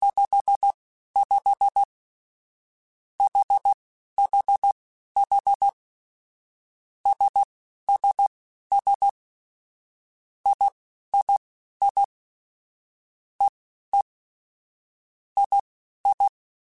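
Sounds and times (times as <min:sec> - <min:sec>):
morse code beeps: 0:00.1 - 0:01.9, 0:03.2 - 0:05.8, 0:07.1 - 0:09.2, 0:10.5 - 0:12.1, 0:15.4 - 0:16.3.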